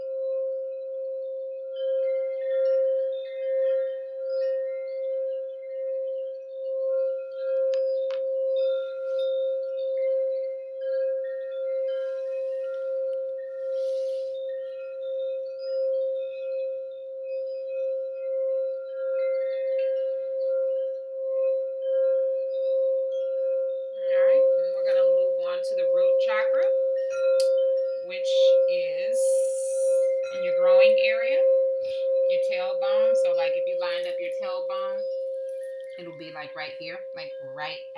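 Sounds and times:
singing bowl ringing: 0.0s - 37.9s.

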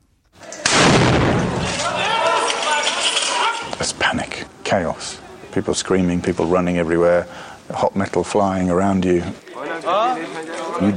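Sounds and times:
mortar fire in Homs: 0.6s - 3.3s
speech: 4.7s - 10.9s.

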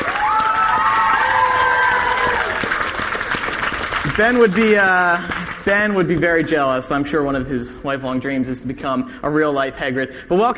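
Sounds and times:
high voices cheering and whooping: 0.0s - 2.8s
audience applause: 0.0s - 6.0s
speech: 4.2s - 10.5s.

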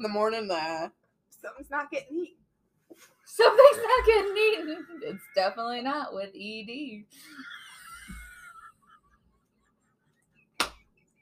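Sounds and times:
speech: 0.0s - 7.6s
hands slapping own thighs: 10.6s - 11.0s.

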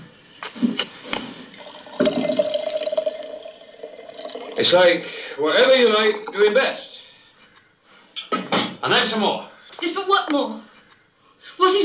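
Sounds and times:
kettle boiling: 0.4s - 6.8s
speech: 4.6s - 7.0s, 8.8s - 10.7s, 11.6s - 11.8s.

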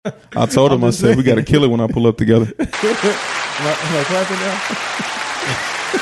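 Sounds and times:
speech: 0.0s - 5.7s
laughter: 0.1s - 6.0s
soundboard applause sound effect: 2.8s - 6.0s.

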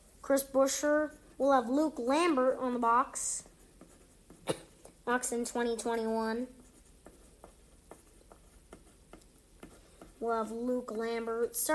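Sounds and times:
speech: 0.3s - 3.5s, 4.5s - 6.6s, 10.2s - 11.7s
pen writing on paper: 3.5s - 4.5s, 6.6s - 10.2s.

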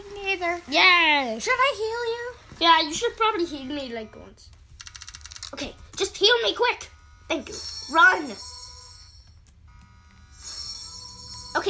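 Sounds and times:
speech: 0.4s - 4.6s, 5.5s - 8.5s
electronic alarm ringing: 2.9s - 5.6s, 6.2s - 11.6s.

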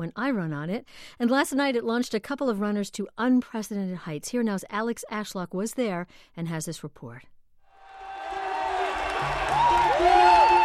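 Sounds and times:
speech: 0.0s - 7.3s
indoor track crowd cheering a runner finishing a 5,000-meter race: 7.7s - 10.6s
crowd whoops and whistles: 9.5s - 10.6s.

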